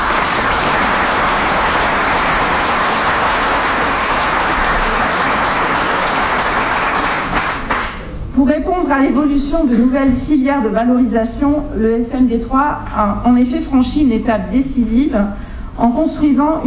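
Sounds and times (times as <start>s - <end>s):
audience applause: 0.0s - 8.0s
speech: 8.9s - 16.6s.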